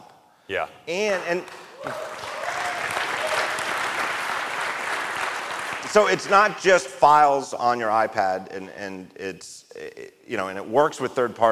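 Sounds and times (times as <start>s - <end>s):
speech: 0.5s - 2.3s, 5.9s - 11.4s
audience applause at a live tech-conference recording: 1.8s - 6.6s.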